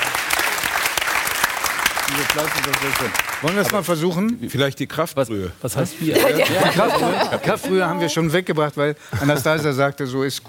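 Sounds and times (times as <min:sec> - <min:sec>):
audience applause: 0:00.0 - 0:03.8
speech: 0:02.1 - 0:10.4
laughter: 0:05.9 - 0:08.1.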